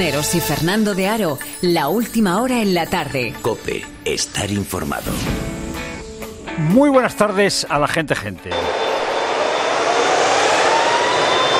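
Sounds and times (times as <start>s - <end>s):
speech: 0.0s - 5.5s, 6.6s - 8.8s
Boeing 737 MAX 8 jet taking off: 8.6s - 11.5s.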